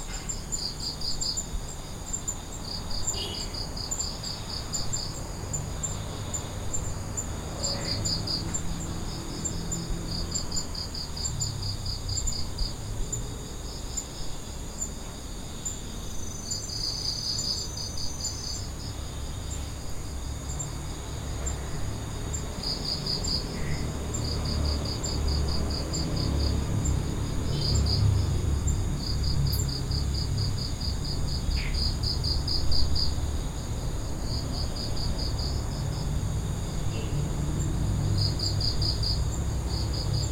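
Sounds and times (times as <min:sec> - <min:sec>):
Balinese city night ambience: 0:00.0 - 0:40.2.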